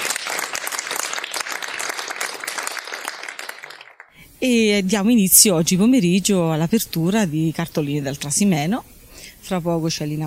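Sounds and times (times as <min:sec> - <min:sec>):
audience applause: 0:00.0 - 0:04.2
speech: 0:04.4 - 0:08.9, 0:09.5 - 0:10.2.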